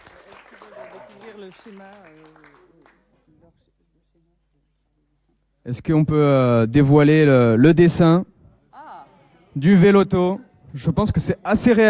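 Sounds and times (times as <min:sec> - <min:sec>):
audience applause: 0:00.0 - 0:03.0
speech: 0:01.4 - 0:02.7, 0:05.6 - 0:08.3, 0:09.6 - 0:11.8.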